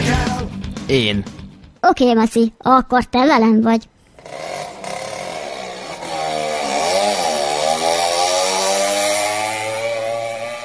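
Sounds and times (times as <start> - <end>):
speech: 0.9 - 4.7
red Porsche sports car engine roaring, approaching fast: 4.2 - 10.6.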